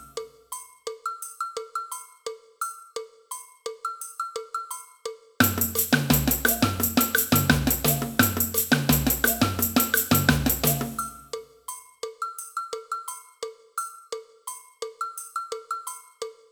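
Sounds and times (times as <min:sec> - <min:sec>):
agogo bell in a samba band: 0:00.0 - 0:00.2, 0:05.4 - 0:11.4
cowbell in a samba band: 0:00.0 - 0:16.4.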